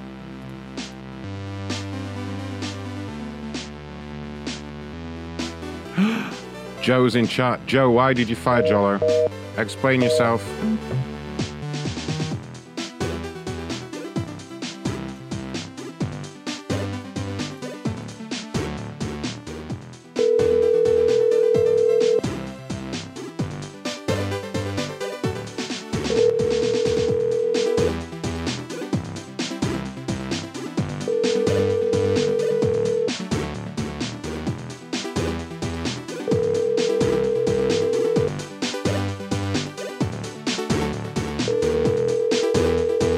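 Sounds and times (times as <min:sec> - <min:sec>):
music: 0:00.0 - 0:43.1
speech: 0:06.8 - 0:11.1
telephone ringing tone on an outgoing call to a landline: 0:08.5 - 0:10.8, 0:20.2 - 0:22.3, 0:26.1 - 0:28.0, 0:31.0 - 0:33.2, 0:36.3 - 0:38.4, 0:41.5 - 0:43.1.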